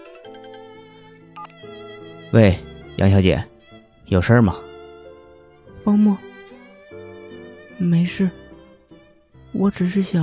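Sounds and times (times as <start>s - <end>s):
mobile phone ringtone for incoming call: 0.0s - 0.8s
speech: 2.3s - 3.5s, 4.1s - 4.6s, 8.1s - 8.4s, 9.6s - 10.2s.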